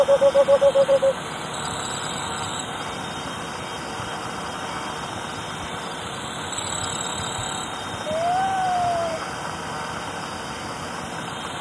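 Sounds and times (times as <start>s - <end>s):
cinnamon screech owl hooting in Ecuador: 0.0s - 1.2s, 8.0s - 9.2s.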